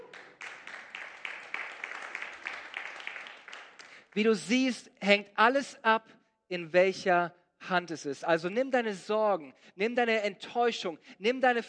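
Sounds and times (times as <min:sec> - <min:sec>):
audience clapping: 0:00.0 - 0:04.4
speech: 0:04.2 - 0:11.6.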